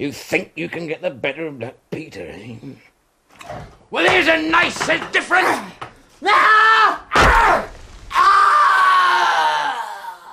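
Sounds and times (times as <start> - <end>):
speech: 0.0 - 2.9, 3.5 - 7.6
man's dying scream in radio drama: 6.2 - 10.3.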